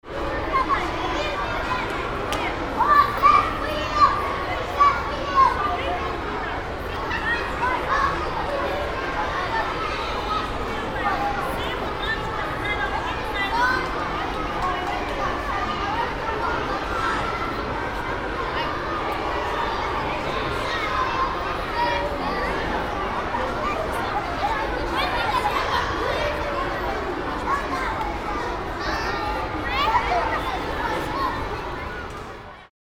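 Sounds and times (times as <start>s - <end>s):
group of children: 0.1s - 32.7s.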